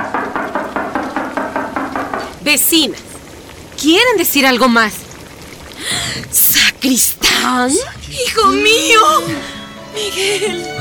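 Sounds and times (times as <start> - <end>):
knocking on a house door: 0.0 - 2.4
speech: 2.5 - 3.1, 3.8 - 5.0, 5.8 - 6.1, 6.8 - 10.7.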